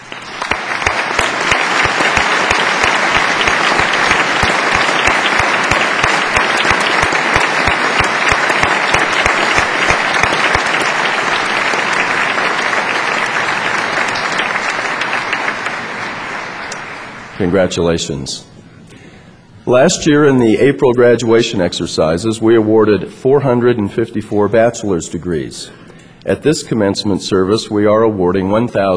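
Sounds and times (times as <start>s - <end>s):
audience applause: 0.0s - 17.3s
speech: 17.4s - 18.5s, 19.7s - 28.9s.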